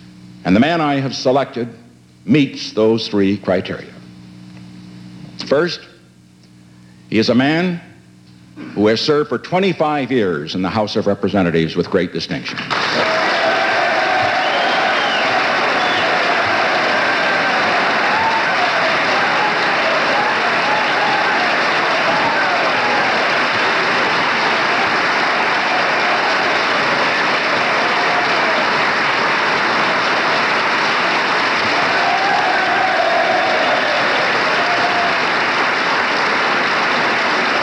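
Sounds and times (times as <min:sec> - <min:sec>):
speech: 0:00.4 - 0:04.0, 0:05.4 - 0:05.9, 0:07.1 - 0:07.9, 0:08.8 - 0:13.3
legislators applauding on their feet: 0:12.7 - 0:37.6.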